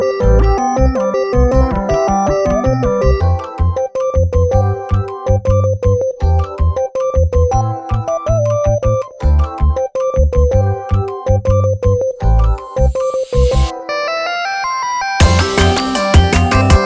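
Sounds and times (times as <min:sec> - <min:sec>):
ringtone music: 0:00.0 - 0:16.8.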